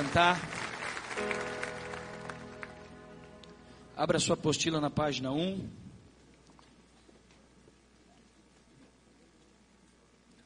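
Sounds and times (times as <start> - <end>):
speech: 0.0 - 0.5, 1.2 - 1.6, 4.0 - 5.8
audience applauding: 0.0 - 3.5.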